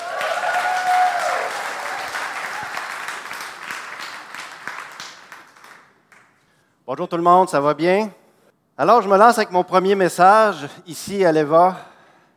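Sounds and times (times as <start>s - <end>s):
church audience applause welcoming a preacher at a morning service: 0.0s - 6.3s
speech: 6.9s - 8.2s, 8.8s - 11.9s.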